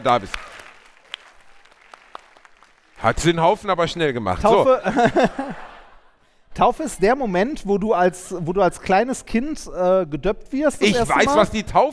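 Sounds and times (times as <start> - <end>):
speech: 0.0 - 0.5, 3.0 - 5.7, 6.6 - 11.9
small round of applause: 0.0 - 3.6
laughter: 4.5 - 6.2.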